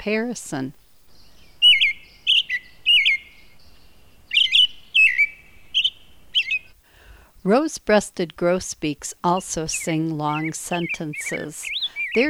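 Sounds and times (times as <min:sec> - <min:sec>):
speech: 0:00.0 - 0:00.8, 0:07.4 - 0:12.2
American robin song: 0:01.1 - 0:06.8, 0:09.7 - 0:12.2.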